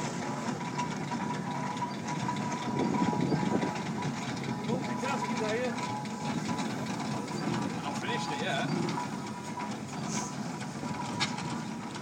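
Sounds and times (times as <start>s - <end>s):
steam lorry passing, quietly hissing: 0.0s - 12.0s
faint voices murmuring: 2.8s - 10.4s.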